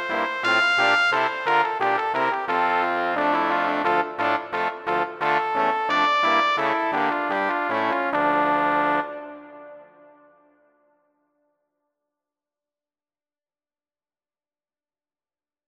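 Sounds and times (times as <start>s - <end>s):
brass instruments: 0.0s - 10.7s.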